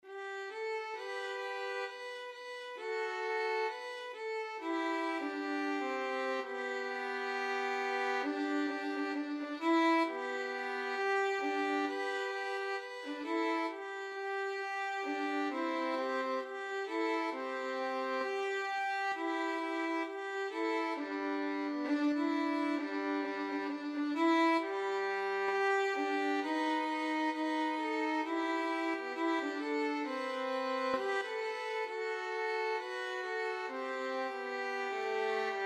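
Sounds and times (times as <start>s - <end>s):
violin duet: 0.0s - 35.6s.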